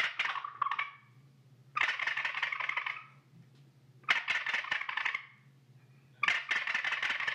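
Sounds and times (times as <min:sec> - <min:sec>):
turkey gobble call being played: 0:00.0 - 0:01.2, 0:01.8 - 0:03.2, 0:04.0 - 0:05.5, 0:06.2 - 0:07.3
faint low hum: 0:00.0 - 0:07.3.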